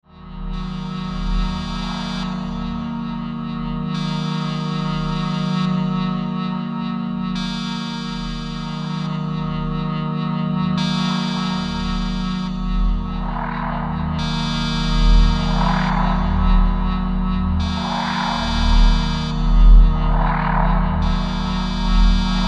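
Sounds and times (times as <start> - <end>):
Roland JD-800 synthesizer: 0.0 - 22.4.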